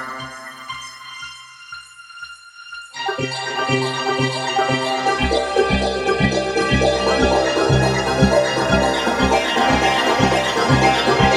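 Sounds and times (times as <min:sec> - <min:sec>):
cinematic tension music: 0:03.0 - 0:11.3.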